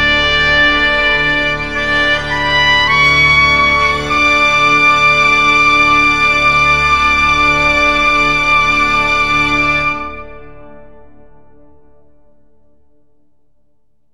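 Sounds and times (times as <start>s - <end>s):
oboe: 0.0s - 11.2s.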